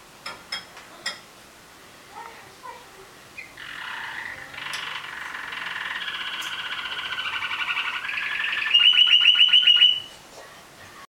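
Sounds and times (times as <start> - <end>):
canary singing: 3.4 - 10.2.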